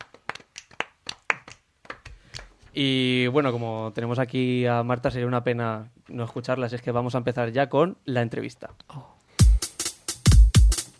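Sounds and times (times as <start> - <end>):
soft golf clap: 0.0 - 2.7
speech: 2.8 - 9.2.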